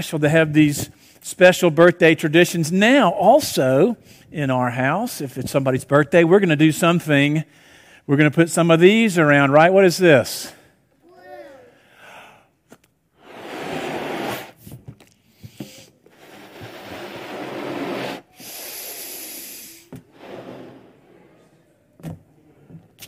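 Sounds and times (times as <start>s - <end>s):
speech: 0.0s - 10.6s
balloon inflated by mouth: 13.1s - 21.1s.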